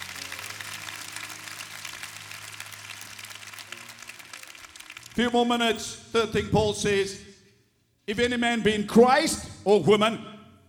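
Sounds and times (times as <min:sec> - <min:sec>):
audience hand clapping: 0:00.0 - 0:05.9
speech: 0:05.2 - 0:07.3, 0:08.1 - 0:10.6.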